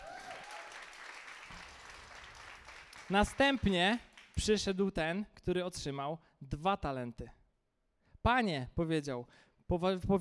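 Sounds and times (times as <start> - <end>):
audience applause: 0.0 - 3.4
speech: 3.1 - 7.4, 8.2 - 10.1.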